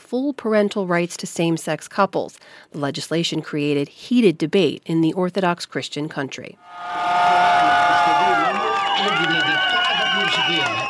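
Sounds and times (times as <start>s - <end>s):
speech: 0.1s - 7.7s
crowd of LGBTQ+ activists cheering and shouting in the street: 6.6s - 10.8s.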